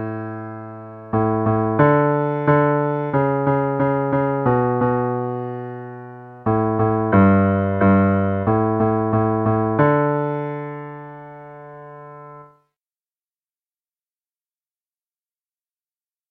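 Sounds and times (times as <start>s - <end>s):
bass: 0.0s - 10.4s.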